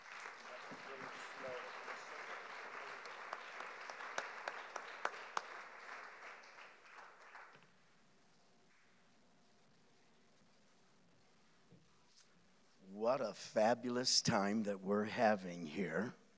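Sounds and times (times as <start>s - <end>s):
theology conference audience applause welcoming a speaker: 0.0s - 7.6s
speech: 13.2s - 16.2s.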